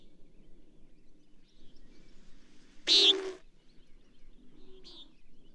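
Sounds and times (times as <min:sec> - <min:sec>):
bird rasping high buzzes: 0:02.9 - 0:03.5.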